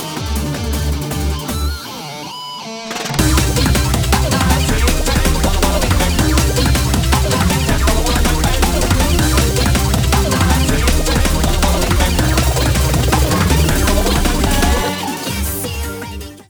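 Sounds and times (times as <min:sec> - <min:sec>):
160 BPM alternative music: 0:00.0 - 0:16.4.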